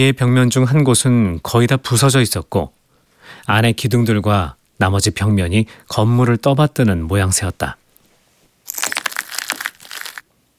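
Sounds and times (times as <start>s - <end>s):
speech: 0.0s - 7.8s
footsteps crunching on broken light bulbs in a half-collapsed house: 7.7s - 10.2s.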